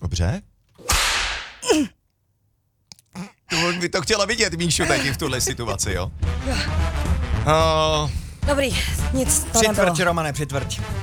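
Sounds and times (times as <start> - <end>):
speech: 0.2 - 0.5, 1.7 - 2.0, 3.2 - 11.0
whip lash striking a person: 0.8 - 1.6.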